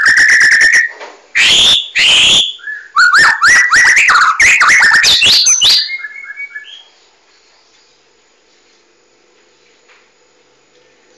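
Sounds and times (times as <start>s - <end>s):
Oriental magpie-robin singing varied whistles and sharp chirps: 0.0s - 7.0s.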